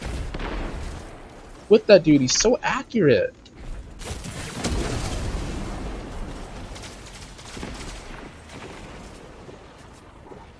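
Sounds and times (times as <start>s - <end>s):
speech: 1.7s - 3.4s
pulse rifle gunfire in a Destiny 2 Crucible match: 4.1s - 9.1s.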